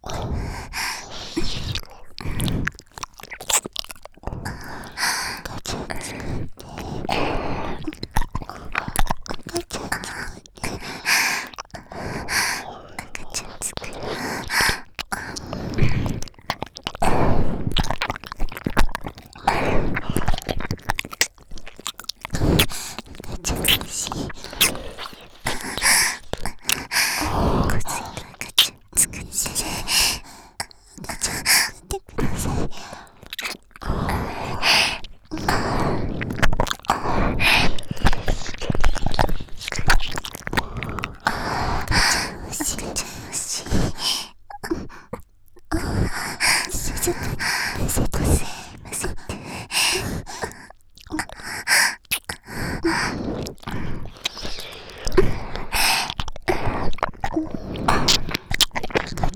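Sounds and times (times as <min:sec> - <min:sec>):
ear licking: 0:00.0 - 0:59.3.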